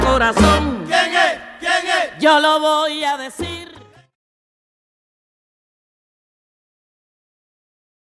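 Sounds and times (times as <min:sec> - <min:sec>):
salsa music: 0:00.0 - 0:04.2.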